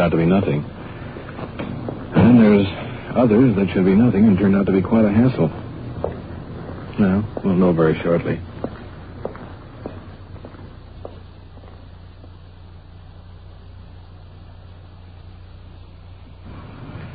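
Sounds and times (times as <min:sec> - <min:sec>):
speech: 0:00.0 - 0:00.8, 0:02.3 - 0:05.6, 0:07.0 - 0:08.5
footsteps walking up the path to a small English-style cottage: 0:00.0 - 0:13.2
steady low rumble: 0:00.0 - 0:17.1.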